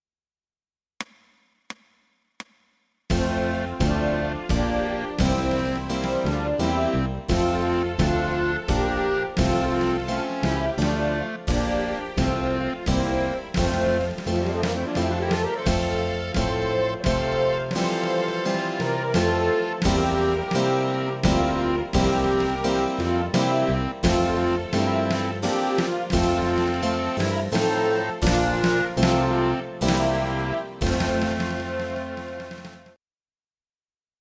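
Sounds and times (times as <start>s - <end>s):
national anthem: 3.1s - 33.0s.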